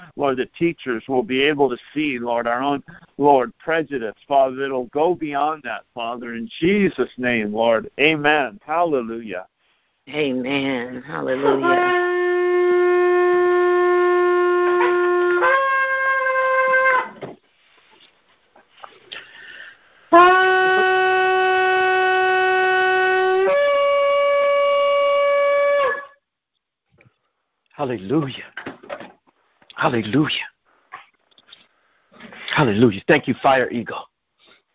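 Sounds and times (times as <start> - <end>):
speech: 0.2 - 9.5, 10.1 - 12.0, 27.8 - 28.7, 29.8 - 30.5, 32.6 - 34.1
shofar being blown: 11.4 - 17.2, 20.1 - 26.2.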